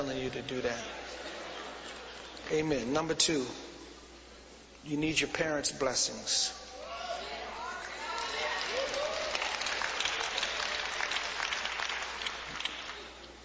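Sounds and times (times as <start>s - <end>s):
speech: 0.0s - 1.4s, 2.5s - 3.8s, 4.8s - 6.7s
audience applause: 7.8s - 13.1s.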